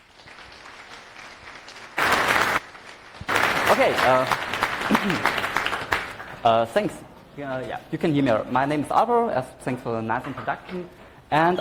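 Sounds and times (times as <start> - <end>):
audience applause: 0.0 - 6.4
speech: 3.8 - 5.5, 6.4 - 11.5.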